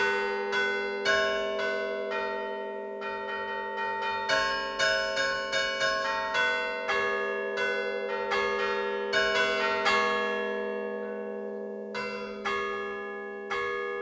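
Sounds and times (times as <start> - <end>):
bells ringing in Rocchetta Vara, La Spezia, Liguria: 0.0 - 14.0.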